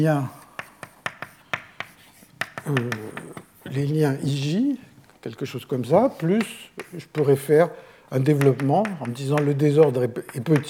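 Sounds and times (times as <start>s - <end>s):
speech: 0.0s - 0.4s, 2.7s - 10.6s
taps and strokes of writing out a partition function equation: 0.2s - 3.9s, 5.8s - 10.6s.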